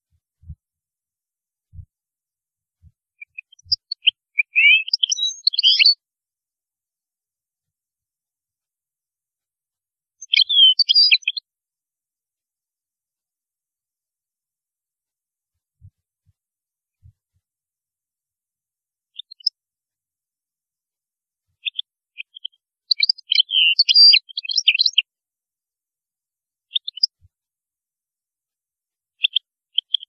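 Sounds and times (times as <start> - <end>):
European goldfinch singing: 3.2 - 6.0, 10.2 - 11.4, 19.2 - 19.6, 21.6 - 25.1, 26.7 - 27.2.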